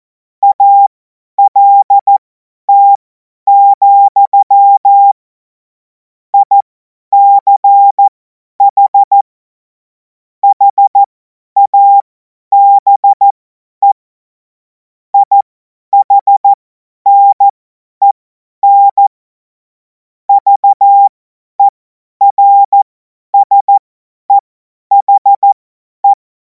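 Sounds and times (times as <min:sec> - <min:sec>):
CW Morse code beeps: 0:00.4 - 0:05.2, 0:06.4 - 0:06.6, 0:07.2 - 0:09.2, 0:10.4 - 0:14.0, 0:15.2 - 0:15.4, 0:16.0 - 0:19.1, 0:20.3 - 0:26.2.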